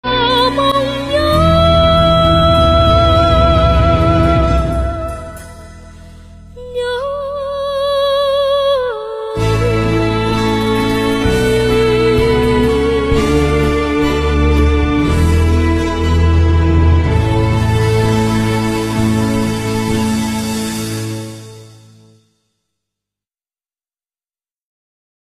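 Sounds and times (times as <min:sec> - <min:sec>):
Vietnamese revolutionary lyrical song medley: 0:00.0 - 0:22.1.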